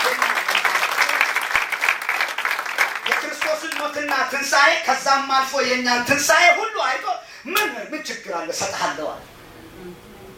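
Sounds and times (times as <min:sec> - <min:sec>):
congregation applause during a church sermon: 0:00.0 - 0:04.4
speech: 0:03.8 - 0:09.9.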